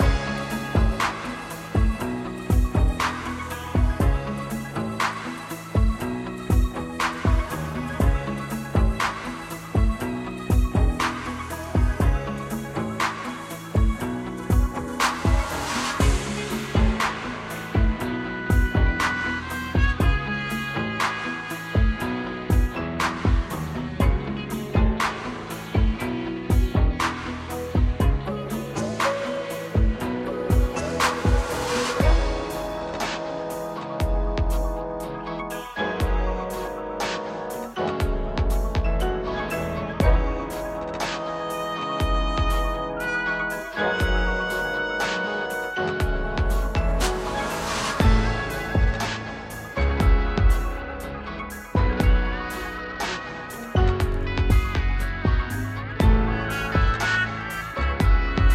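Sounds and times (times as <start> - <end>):
bar loop: 0.0 - 58.5.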